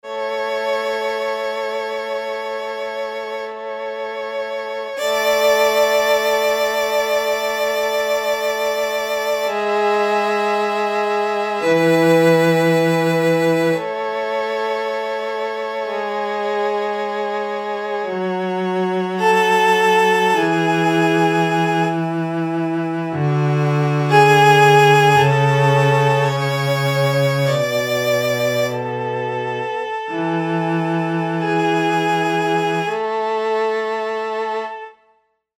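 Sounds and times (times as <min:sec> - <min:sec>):
string quartet: 0:00.0 - 0:35.0.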